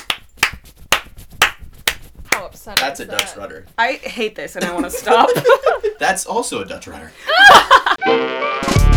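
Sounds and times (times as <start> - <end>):
hand clap: 0.0 - 3.4
speech: 2.6 - 8.8
laughter: 4.6 - 6.2, 7.2 - 8.0.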